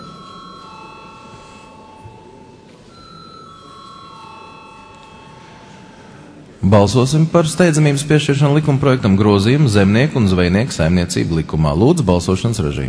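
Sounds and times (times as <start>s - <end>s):
parliament session bell ringing: 0.0s - 8.7s
speech: 6.6s - 12.8s.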